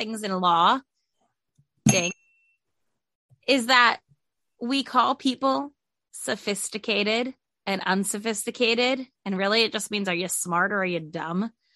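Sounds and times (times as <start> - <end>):
speech: 0.0 - 0.9, 1.8 - 2.2, 3.5 - 4.0, 4.6 - 11.6
bell ding: 1.9 - 2.5.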